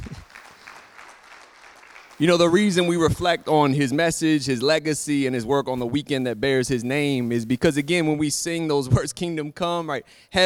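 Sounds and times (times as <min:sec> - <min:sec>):
audience clapping: 0:00.0 - 0:04.3
speech: 0:02.2 - 0:10.4.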